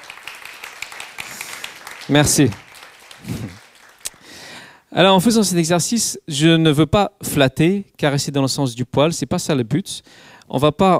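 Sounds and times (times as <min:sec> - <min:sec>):
audience applause: 0:00.0 - 0:04.4
speech: 0:02.1 - 0:02.6, 0:05.0 - 0:10.9.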